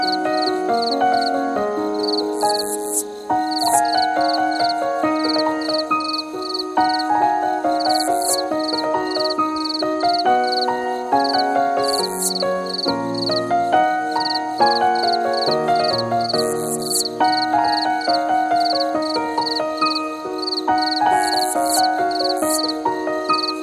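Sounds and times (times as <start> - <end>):
cricket chirping at night: 0.0 - 23.6.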